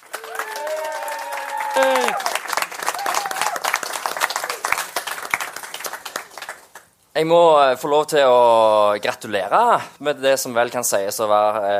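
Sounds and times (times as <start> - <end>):
warm audience applause: 0.0 - 6.9
speech: 1.8 - 2.4, 7.2 - 11.7.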